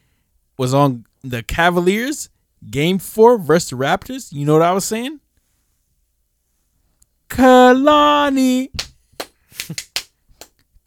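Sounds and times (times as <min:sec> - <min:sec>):
speech: 0:00.6 - 0:05.2, 0:07.3 - 0:08.9, 0:09.7 - 0:09.9
hand claps: 0:08.2 - 0:10.6.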